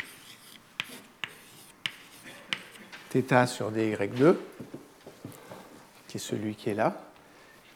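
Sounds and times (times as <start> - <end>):
writing tool tapping a surface during a mathematics lecture: 0.0 - 3.0
speech: 3.1 - 4.7, 6.1 - 7.1.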